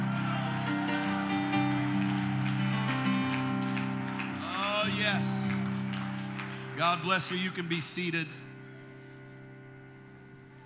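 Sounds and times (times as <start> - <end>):
audience clapping hands in praise: 0.0 - 8.2
speech: 4.9 - 5.4, 6.8 - 8.4.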